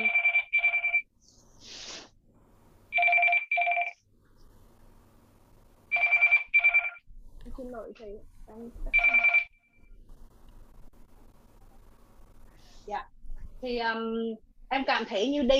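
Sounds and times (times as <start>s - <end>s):
telephone ringing during a course session: 0.0s - 1.1s, 2.9s - 4.0s, 5.9s - 7.1s, 8.9s - 10.0s
speech: 7.6s - 9.3s, 12.9s - 15.5s.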